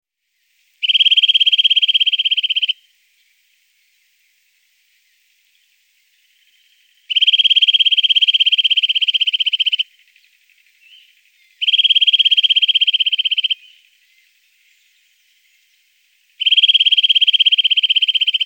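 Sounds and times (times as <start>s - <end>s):
Eurasian nuthatch whistling and trilling: 0.8s - 2.8s, 7.1s - 9.8s, 11.6s - 13.8s, 16.4s - 18.4s.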